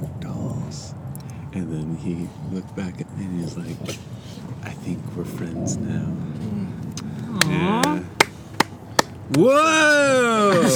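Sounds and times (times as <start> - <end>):
person murmuring and laughing: 1.5 - 8.7, 9.3 - 10.7
speech: 1.6 - 8.1, 9.3 - 10.7
hand claps: 7.0 - 10.7.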